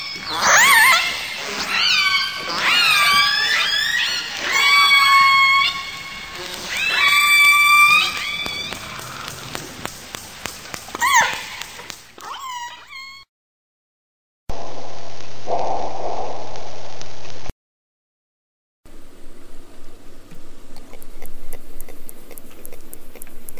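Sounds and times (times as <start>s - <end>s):
orca whistles and calls in Antarctica: 0.0s - 9.9s.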